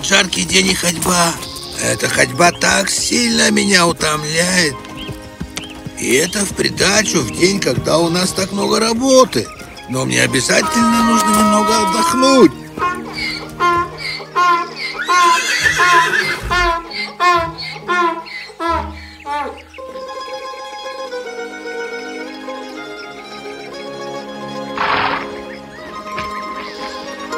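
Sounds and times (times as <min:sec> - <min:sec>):
speech: 0:00.0 - 0:04.9, 0:06.0 - 0:12.6
horse neighing: 0:10.2 - 0:19.7, 0:24.8 - 0:27.3.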